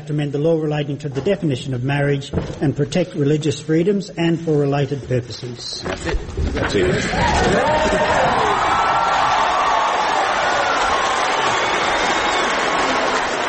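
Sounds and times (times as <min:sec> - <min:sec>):
speech: 0:00.0 - 0:08.2
parliament gallery cheering: 0:06.8 - 0:13.4
standing applause in the Canberra Parliament gallery: 0:07.5 - 0:13.4.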